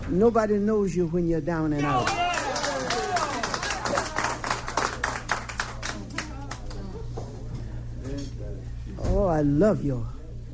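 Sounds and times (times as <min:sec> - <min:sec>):
speech: 0:00.1 - 0:02.3, 0:09.4 - 0:10.1
audience applause: 0:01.8 - 0:06.8.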